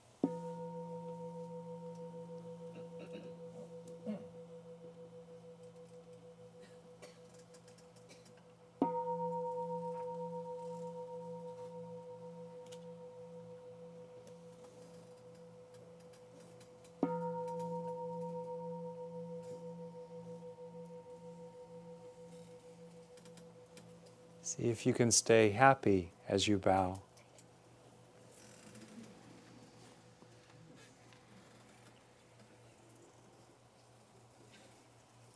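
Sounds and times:
gong struck and ringing: 0.2s - 7.0s, 8.8s - 15.6s, 17.0s - 24.5s
speech: 24.5s - 27.1s.

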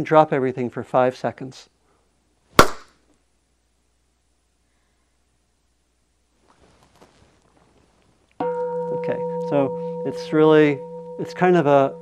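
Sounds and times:
speech: 0.0s - 1.7s, 9.5s - 12.0s
single hand clap: 2.6s - 2.9s.

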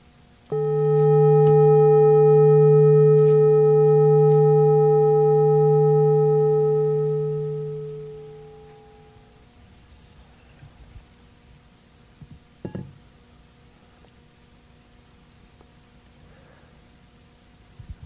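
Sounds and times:
meditation bell ringing: 0.5s - 9.4s.

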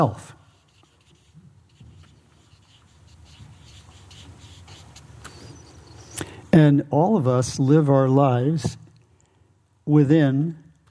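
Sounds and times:
speech: 0.0s - 0.4s, 6.6s - 8.8s, 9.9s - 10.8s
drawing stroke scratching while drawing a circle: 0.0s - 6.0s.

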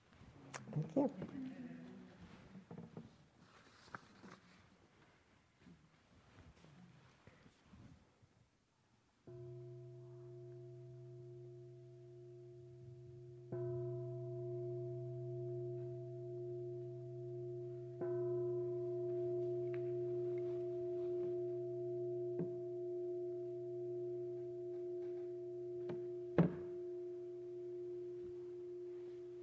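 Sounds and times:
speech: 0.8s - 1.6s
meditation bell ringing: 9.2s - 29.4s.

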